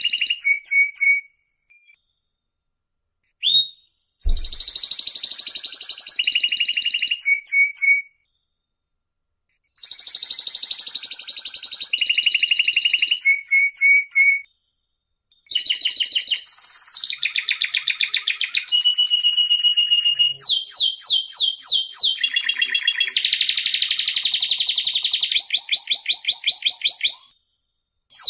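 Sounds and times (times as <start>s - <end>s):
canary song: 0.0s - 2.2s, 3.2s - 8.4s, 9.7s - 14.6s, 15.3s - 27.5s.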